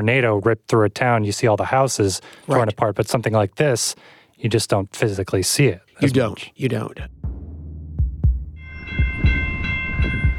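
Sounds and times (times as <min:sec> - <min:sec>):
speech: 0:00.0 - 0:07.2
passing train: 0:08.7 - 0:10.3.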